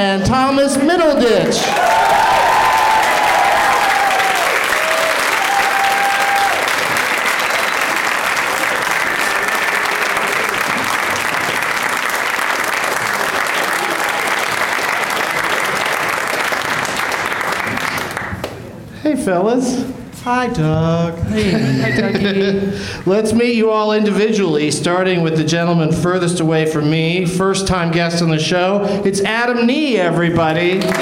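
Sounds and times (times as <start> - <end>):
speech: 0.0 - 2.2, 19.2 - 31.0
studio audience applause welcoming talk show guests: 1.5 - 18.6, 30.6 - 31.0
laughter: 21.2 - 22.9.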